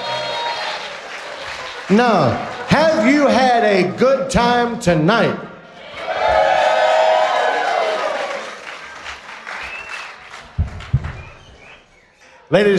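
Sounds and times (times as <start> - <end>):
audience applause: 0.0 - 3.4, 5.8 - 11.9
speech: 1.9 - 5.5, 12.5 - 12.7.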